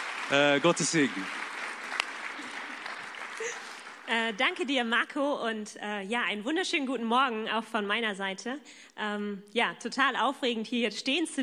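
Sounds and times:
audience applause: 0:00.0 - 0:04.5
speech: 0:00.3 - 0:01.4, 0:03.4 - 0:11.4.

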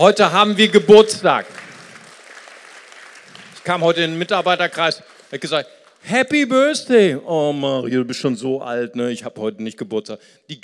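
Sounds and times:
speech: 0:00.0 - 0:01.6, 0:03.6 - 0:10.6
audience applauding: 0:00.2 - 0:06.1.

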